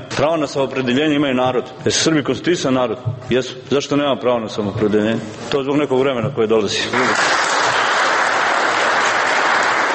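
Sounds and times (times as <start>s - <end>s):
speech: 0.2s - 7.4s
committee members and guests applauding at an assembly: 6.9s - 9.9s.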